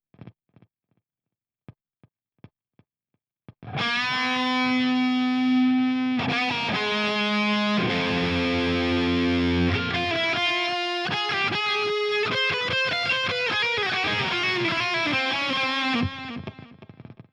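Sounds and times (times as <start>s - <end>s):
guitar: 3.5s - 17.3s.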